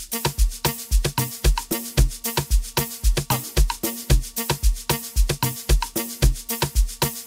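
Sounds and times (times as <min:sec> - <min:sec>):
amapiano music mix: 0:00.1 - 0:07.2.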